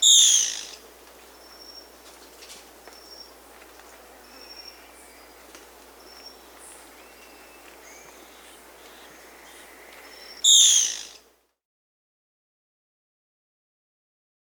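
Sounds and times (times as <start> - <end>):
Black-spotted Bare-eye Phlegopsis nigromaculata call in Peru: 0.0 - 11.2.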